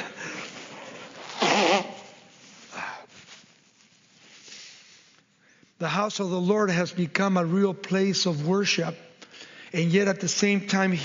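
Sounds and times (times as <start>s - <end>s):
nose blowing into a tissue: 0.2s - 2.4s
faint tissue rustling: 0.2s - 5.2s
speech: 5.8s - 9.0s, 9.7s - 11.0s.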